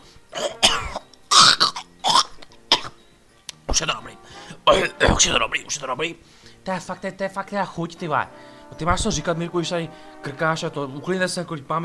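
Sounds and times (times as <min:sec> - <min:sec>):
person coughing after choking on carp bone: 0:00.3 - 0:03.0, 0:04.7 - 0:05.2
speech: 0:03.8 - 0:11.8.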